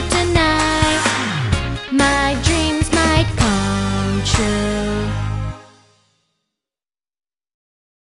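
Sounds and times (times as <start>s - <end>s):
song vocals in English: 0.0s - 5.8s.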